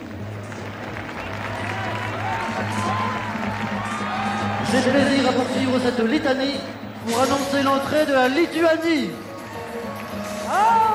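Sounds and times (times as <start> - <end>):
Olympic stadium crowd cheering and applauding a national team's entrance: 0.0 - 6.3, 9.2 - 10.9
crowd whoops: 1.4 - 4.7, 10.4 - 10.9
speech: 4.7 - 9.2.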